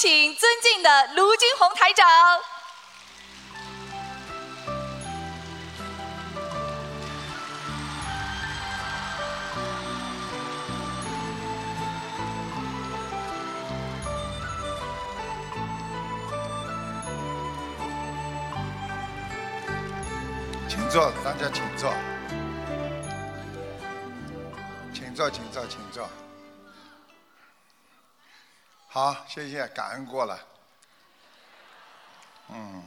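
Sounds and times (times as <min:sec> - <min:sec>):
speech: 0:00.0 - 0:02.6, 0:20.9 - 0:22.1, 0:25.2 - 0:26.2, 0:29.0 - 0:30.5, 0:32.5 - 0:32.8
crowd applauding: 0:02.4 - 0:26.4, 0:30.9 - 0:32.8.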